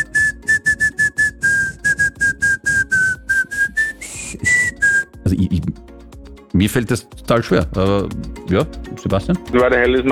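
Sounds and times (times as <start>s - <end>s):
person whistling a pop song melody: 0.0s - 5.2s
speech: 6.6s - 10.1s.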